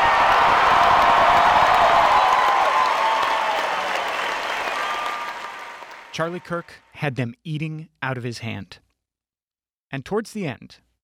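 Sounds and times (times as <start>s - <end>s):
crowd cheering: 0.0s - 6.9s
speech: 6.2s - 8.8s, 9.9s - 10.8s.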